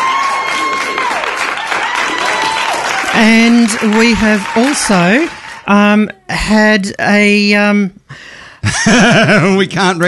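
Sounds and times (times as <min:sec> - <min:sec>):
audience applause: 0:00.0 - 0:05.8
speech: 0:03.2 - 0:10.0
laughter: 0:08.6 - 0:09.7.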